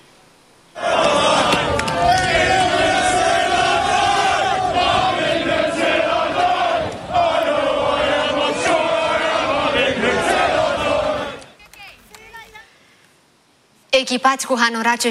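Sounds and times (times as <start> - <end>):
masked protesters shouting: 0.8 - 12.7
speech: 14.1 - 15.0.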